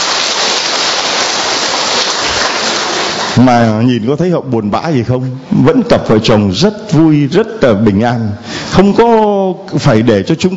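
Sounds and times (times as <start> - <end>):
audience applause: 0.0 - 3.5
speech: 3.4 - 10.5.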